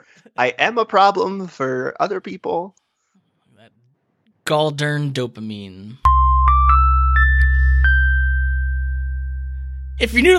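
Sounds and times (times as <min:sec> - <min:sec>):
speech: 0:00.0 - 0:02.8, 0:04.5 - 0:06.2, 0:10.0 - 0:10.3
bright segment chime: 0:06.1 - 0:10.3
low steady hum: 0:06.1 - 0:10.3.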